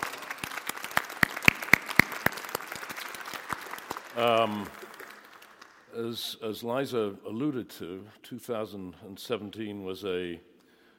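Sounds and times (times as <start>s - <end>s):
audience applause: 0.0s - 5.9s
speech: 4.2s - 4.8s, 6.0s - 10.5s.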